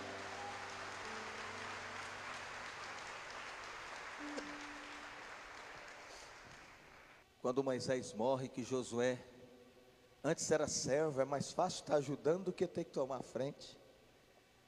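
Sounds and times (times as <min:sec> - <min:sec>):
audience applause: 0:00.0 - 0:07.2
speech: 0:07.4 - 0:09.3, 0:10.2 - 0:13.8.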